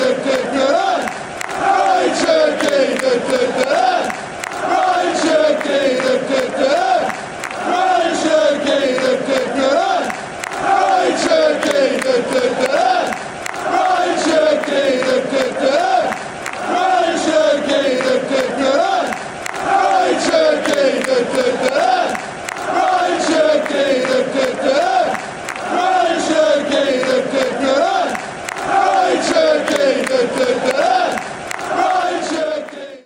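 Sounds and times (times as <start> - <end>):
players chanting: 0.0 - 33.0.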